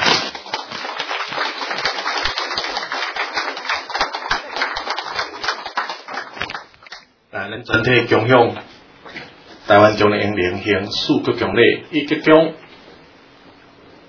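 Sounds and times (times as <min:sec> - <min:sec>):
audience applause: 0:00.3 - 0:07.0
speech: 0:07.6 - 0:08.7, 0:09.7 - 0:12.6.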